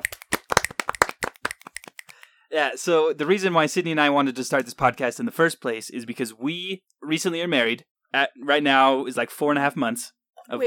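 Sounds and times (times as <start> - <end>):
round of applause: 0.0 - 2.2
speech: 2.5 - 10.6.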